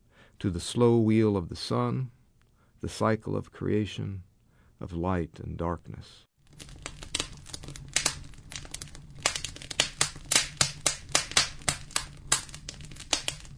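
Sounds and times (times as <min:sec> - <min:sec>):
speech: 0:00.4 - 0:02.2, 0:02.8 - 0:06.8
sappy pine popping and sizzling in the stove: 0:06.4 - 0:13.5.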